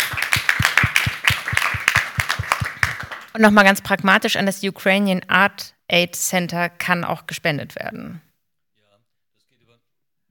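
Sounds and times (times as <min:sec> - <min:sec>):
audience applause: 0:00.0 - 0:03.4
speech: 0:03.4 - 0:08.3.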